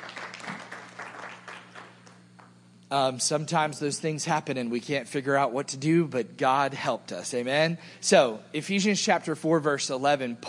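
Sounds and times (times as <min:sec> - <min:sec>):
audience applause: 0:00.0 - 0:02.5
low constant hum: 0:00.0 - 0:10.4
speech: 0:02.9 - 0:10.4.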